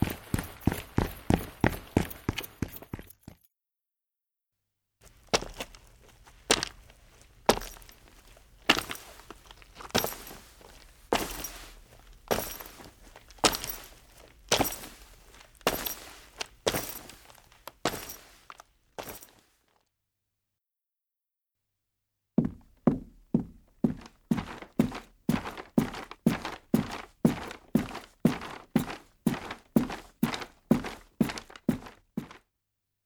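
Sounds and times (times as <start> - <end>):
footsteps: 0.0 - 3.4, 5.0 - 19.4, 22.4 - 32.4
clothes rustling: 5.0 - 19.8, 23.9 - 32.4.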